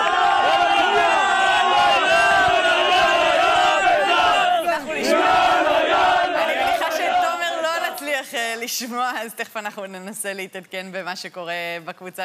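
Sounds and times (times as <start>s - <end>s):
Beitar Jerusalem football fans chanting at Teddy Stadium: 0.0s - 8.2s
speech: 8.8s - 12.2s.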